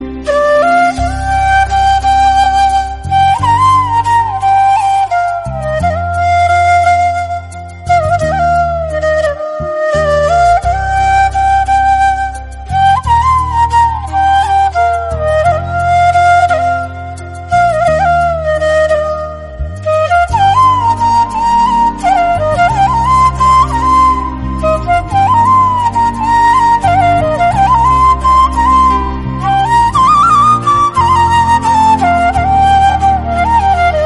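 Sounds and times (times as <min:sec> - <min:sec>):
flute: 0:00.0 - 0:34.0.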